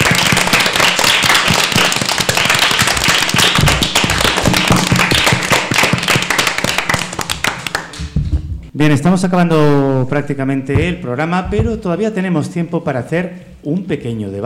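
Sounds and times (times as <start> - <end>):
children clapping: 0.0 - 8.2
speech: 8.8 - 14.4.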